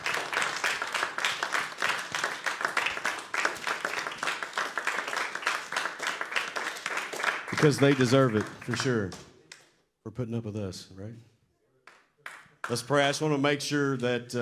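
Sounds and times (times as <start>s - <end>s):
audience clapping hands: 0.0s - 9.8s, 11.9s - 13.1s
speech: 7.6s - 9.3s, 10.2s - 11.3s, 12.7s - 14.4s.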